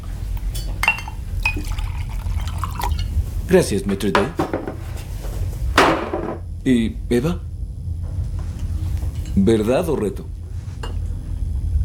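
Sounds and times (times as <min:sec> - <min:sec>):
low rumble: 0:00.0 - 0:11.8
glass clinking: 0:00.5 - 0:03.1
drink being poured into glass: 0:00.8 - 0:03.1
speech: 0:03.5 - 0:04.7, 0:06.6 - 0:07.5, 0:09.4 - 0:10.4.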